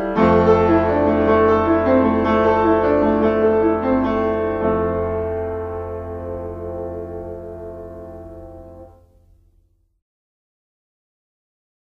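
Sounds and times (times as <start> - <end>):
prelude in F major: 0.0 - 9.1.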